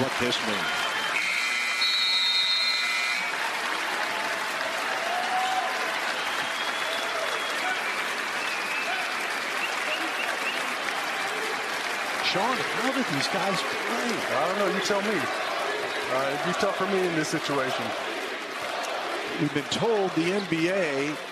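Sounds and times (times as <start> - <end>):
large arena crowd applauding and cheering: 0.0 - 21.3
speech: 0.1 - 0.8, 12.4 - 15.5, 16.1 - 18.1, 19.4 - 21.3
brief buzzer-like tone: 1.2 - 3.3.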